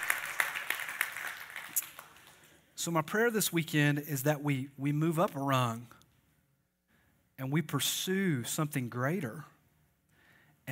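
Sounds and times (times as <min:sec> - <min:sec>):
audience clapping: 0:00.0 - 0:02.7
speech: 0:02.8 - 0:06.0, 0:07.4 - 0:09.5.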